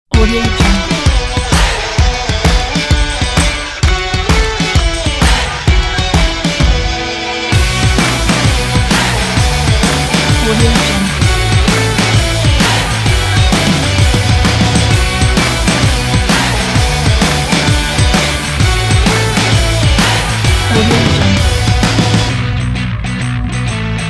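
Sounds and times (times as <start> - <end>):
pop rock music: 0.1 - 24.0.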